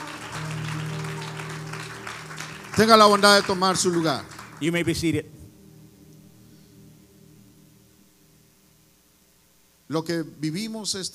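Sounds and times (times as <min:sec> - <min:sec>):
audience applause: 0:00.0 - 0:05.2
speech: 0:02.8 - 0:05.4, 0:09.9 - 0:11.1.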